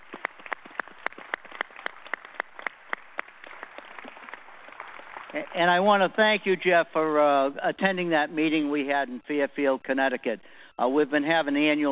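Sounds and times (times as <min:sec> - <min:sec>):
audience applause: 0:00.0 - 0:05.9
speech: 0:05.3 - 0:11.8.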